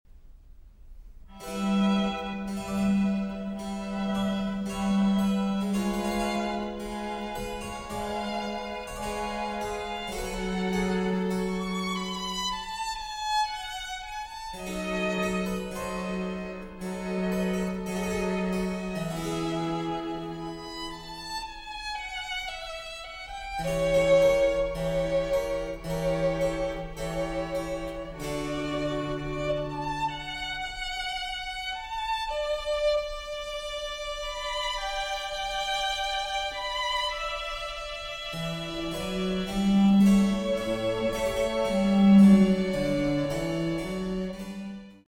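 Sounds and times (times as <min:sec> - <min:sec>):
trio sonata for two violins and continuo: 0:01.3 - 0:45.0.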